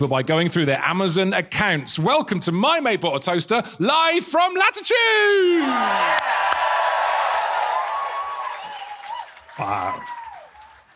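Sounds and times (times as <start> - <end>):
speech: 0.0 - 6.7, 9.6 - 10.2
whoops and shouts: 5.2 - 10.7
live audience cheering: 5.4 - 10.9.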